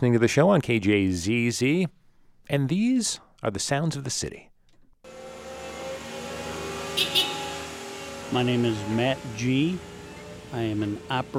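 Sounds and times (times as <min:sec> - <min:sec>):
speech: 0:00.0 - 0:04.5, 0:08.3 - 0:09.9, 0:10.5 - 0:11.3
Zamboni ice resurfacing machine engine running: 0:05.1 - 0:11.3.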